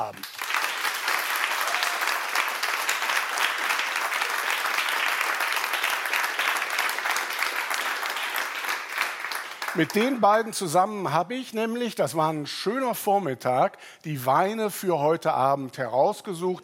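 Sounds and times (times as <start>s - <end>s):
speech: 0.0s - 0.3s, 9.8s - 16.6s
audience applause: 0.0s - 10.4s.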